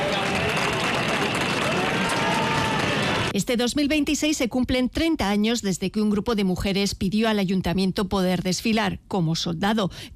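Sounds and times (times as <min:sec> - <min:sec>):
applause at the arrival of the general: 0:00.0 - 0:03.3
crowd whistling: 0:00.0 - 0:03.3
speech: 0:03.4 - 0:10.1.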